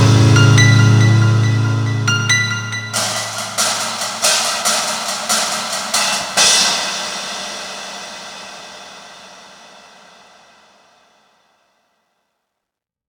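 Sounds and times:
theme music loop stem: 0.0 - 7.5.

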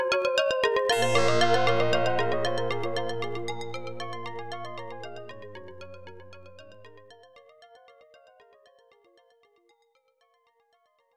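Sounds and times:
quartet playing in a deli shop: 0.9 - 7.1.

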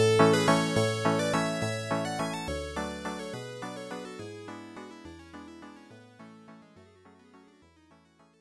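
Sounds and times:
waltz music: 0.0 - 5.0.

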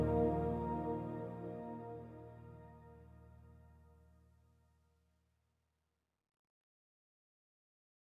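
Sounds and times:
forest ambient music: 0.0 - 3.4.

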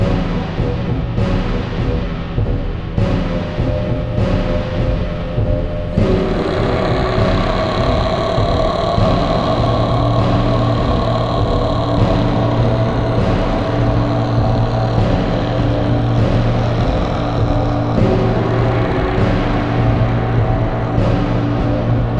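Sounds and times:
tense Mongolian drums: 0.0 - 22.1
voice: 6.0 - 20.0.

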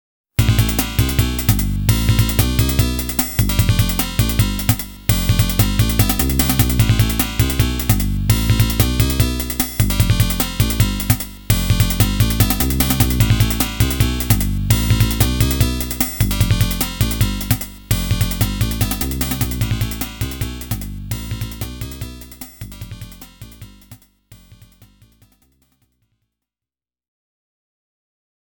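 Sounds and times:
FM synth sound for a shop: 0.4 - 25.1.

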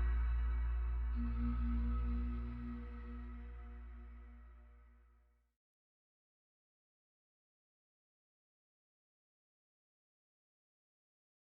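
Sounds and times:
dark ambient music: 0.0 - 5.1.

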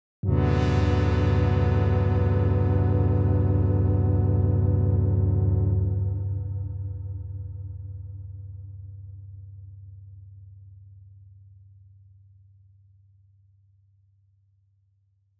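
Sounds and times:
musical intro in A minor: 0.2 - 7.1.

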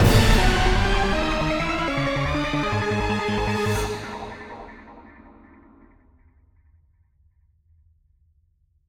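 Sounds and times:
music sting: 0.0 - 6.0.

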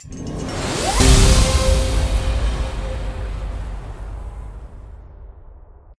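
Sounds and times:
transition sound: 0.0 - 5.9.

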